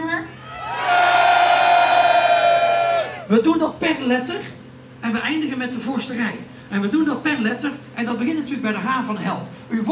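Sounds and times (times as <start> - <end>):
audience cheering loudly: 0.3 - 3.3
speech: 3.3 - 9.9.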